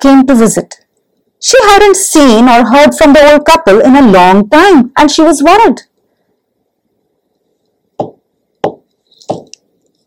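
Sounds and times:
speech: 0.0 - 0.8, 1.4 - 5.9
knocking on a door: 8.0 - 9.5.

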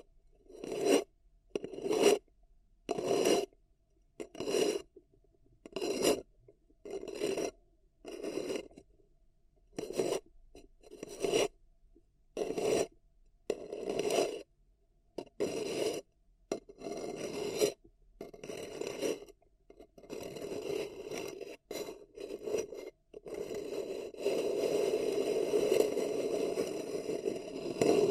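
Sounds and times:
raspy scrapes on a paper cup: 0.5 - 2.2, 2.9 - 3.5, 4.2 - 4.9, 5.6 - 8.9, 9.8 - 11.5, 12.4 - 12.9, 13.5 - 14.4, 15.2 - 28.0.

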